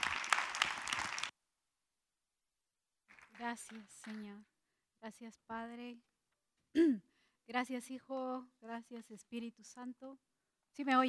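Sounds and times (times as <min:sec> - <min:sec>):
audience applause: 0:00.0 - 0:01.3
speech: 0:03.5 - 0:06.1, 0:06.7 - 0:11.0.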